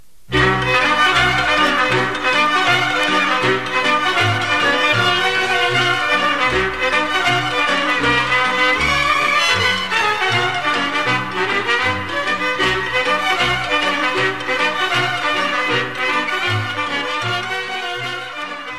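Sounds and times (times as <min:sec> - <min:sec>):
Romanian hora folk dance music: 0:00.3 - 0:18.7.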